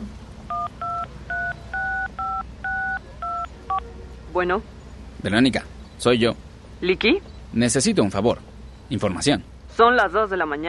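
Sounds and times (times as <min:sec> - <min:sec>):
telephone number being dialed: 0:00.5 - 0:03.5
speech: 0:04.4 - 0:10.6.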